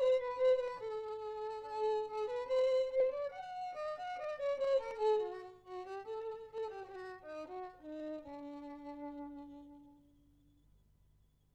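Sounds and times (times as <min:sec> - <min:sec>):
violin duet: 0:00.0 - 0:10.2.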